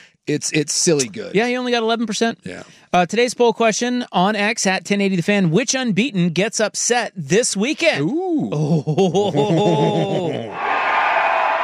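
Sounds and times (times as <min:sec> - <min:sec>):
speech: 0:00.3 - 0:10.7
laughter: 0:08.6 - 0:10.7
crowd cheering: 0:09.6 - 0:11.6.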